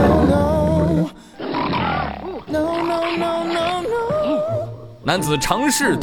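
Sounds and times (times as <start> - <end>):
mountain lion growling and snarling: 0.0 - 4.2
speech: 5.1 - 6.0.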